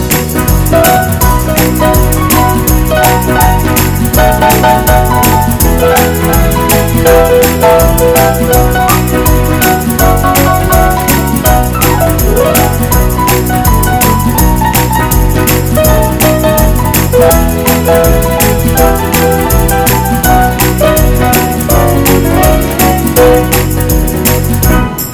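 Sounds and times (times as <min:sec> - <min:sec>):
hot swing music: 0:00.0 - 0:25.1.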